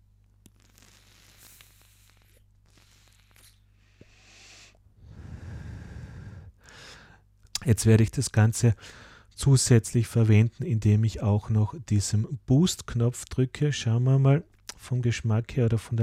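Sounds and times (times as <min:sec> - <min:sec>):
inhaling through a vaporizer with a coil head at about 11 watts: 0:00.6 - 0:07.2
speech: 0:07.6 - 0:16.0.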